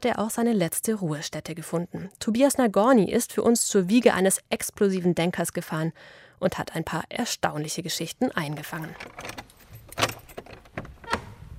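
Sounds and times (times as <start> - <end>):
speech: 0.0 - 10.2
keys jangling and clicking in the lock of a small village church door: 8.7 - 11.2.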